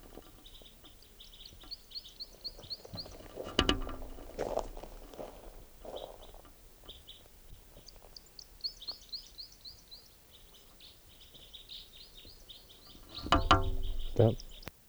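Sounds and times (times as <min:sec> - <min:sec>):
bird chirping: 0:00.0 - 0:04.6, 0:05.5 - 0:14.7
thumps and rustles: 0:02.9 - 0:06.6, 0:12.9 - 0:14.7
speech: 0:14.2 - 0:14.4.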